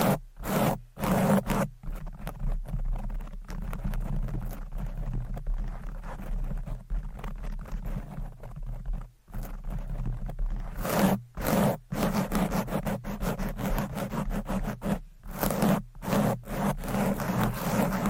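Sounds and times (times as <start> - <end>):
fast aggressive microphone scratching: 0.0 - 18.0.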